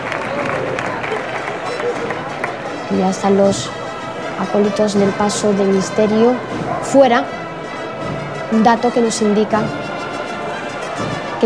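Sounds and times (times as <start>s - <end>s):
crowd applause outside a parish church at a Holy Week procession: 0.0s - 3.3s
speech: 2.9s - 3.8s, 4.4s - 7.4s, 8.5s - 9.8s, 11.0s - 11.4s.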